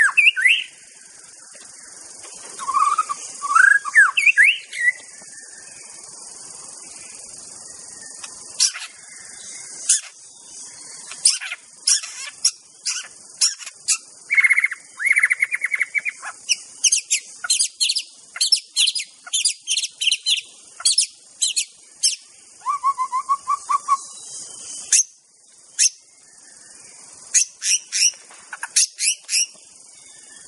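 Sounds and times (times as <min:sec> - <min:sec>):
insects buzzing: 0:00.0 - 0:30.4
white-rumped shama singing: 0:00.0 - 0:30.4.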